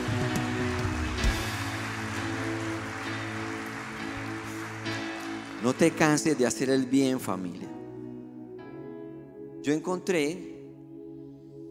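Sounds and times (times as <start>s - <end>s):
audience applause: 0.0s - 6.9s
speech: 5.6s - 7.8s, 9.6s - 10.5s.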